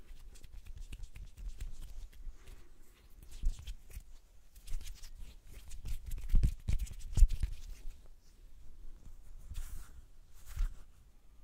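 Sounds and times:
hands rubbing and brushing: 0.0s - 11.0s.

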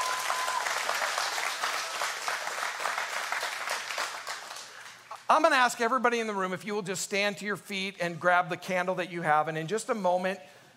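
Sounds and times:
round of applause: 0.0s - 5.3s
speech: 5.3s - 10.6s.

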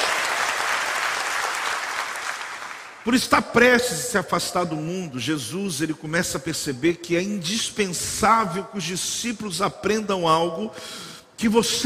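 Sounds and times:
audience applauding: 0.0s - 3.0s
speech: 3.0s - 11.8s.

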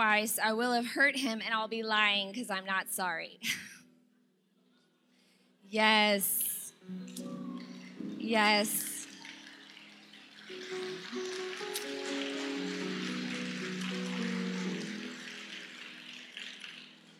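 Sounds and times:
speech: 0.0s - 3.7s, 5.7s - 7.3s, 8.3s - 8.9s
audience clapping: 7.1s - 17.1s.

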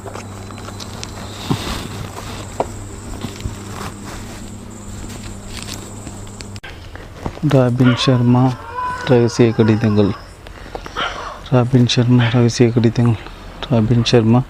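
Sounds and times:
footsteps walking toward a lift: 0.0s - 11.0s
speech: 7.4s - 10.2s, 11.5s - 14.4s.

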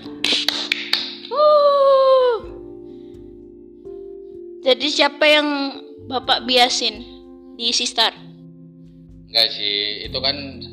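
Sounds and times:
hand clapping: 0.2s - 1.4s
loud sustained tonal whoop: 1.3s - 2.5s
speech: 4.7s - 8.3s, 9.3s - 10.7s.

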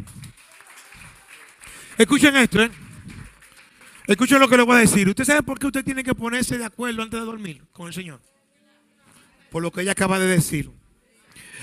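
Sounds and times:
applause: 0.0s - 5.1s
speech: 2.0s - 2.8s, 4.1s - 8.3s, 9.5s - 10.8s.

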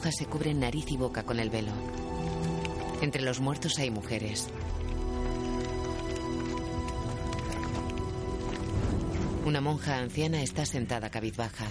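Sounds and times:
speech: 0.0s - 2.3s, 3.0s - 5.0s, 9.5s - 11.7s
riderless horse galloping: 0.7s - 11.7s.

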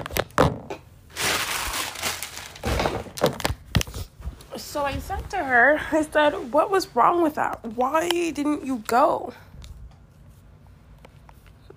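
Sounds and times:
wrapping paper being crunched up: 1.1s - 3.8s
speech: 4.8s - 9.5s.

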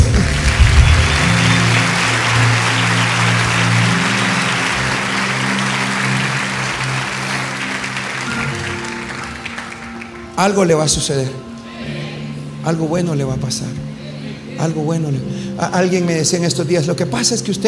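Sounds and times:
audience applause: 0.0s - 10.4s
speech: 10.4s - 11.5s, 12.6s - 13.9s, 14.6s - 17.6s.

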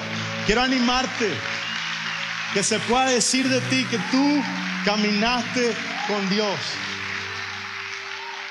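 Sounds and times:
audience applauding: 0.0s - 8.5s
speech: 0.5s - 1.5s, 2.5s - 6.9s.

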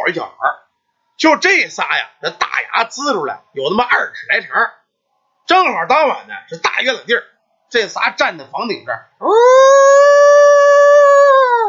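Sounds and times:
speech: 0.1s - 0.5s, 1.2s - 4.8s, 5.5s - 9.8s
howling at the moon: 9.2s - 11.6s.

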